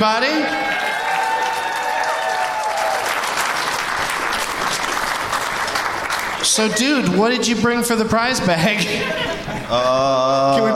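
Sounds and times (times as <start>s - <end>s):
speech: 0.0s - 0.6s, 6.4s - 10.7s
audience applause: 0.3s - 7.2s
laughter: 6.4s - 7.6s, 8.5s - 10.7s.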